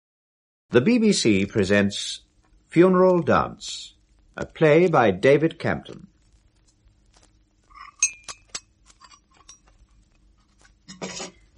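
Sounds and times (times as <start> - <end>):
speech: 0.7 - 6.1
china and spoons clattering: 7.7 - 9.7, 10.9 - 11.4
teacups and cutlery clinking: 7.7 - 9.9, 10.8 - 11.5.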